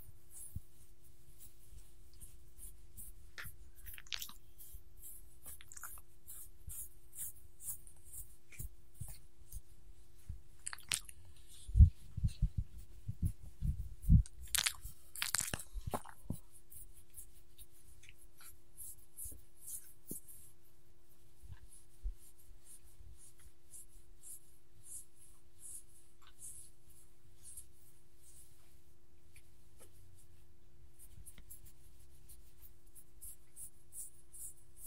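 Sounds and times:
dog being petted with scratching and rustling: 0:00.0 - 0:34.8
dog crunching and licking: 0:03.8 - 0:04.4, 0:05.6 - 0:06.0, 0:10.6 - 0:11.1, 0:14.4 - 0:16.2.

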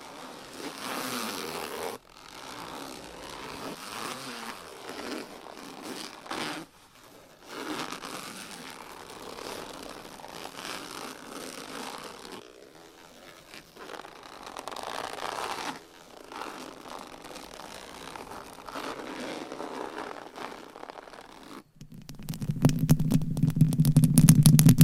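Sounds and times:
dry raspy scratching and rubbing: 0:00.0 - 0:24.8
rapid low tapping: 0:21.7 - 0:24.8.

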